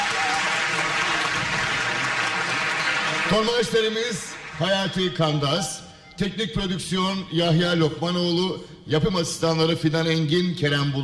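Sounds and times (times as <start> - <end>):
audience applause for a choir: 0.0 - 5.0
speech: 3.3 - 11.0.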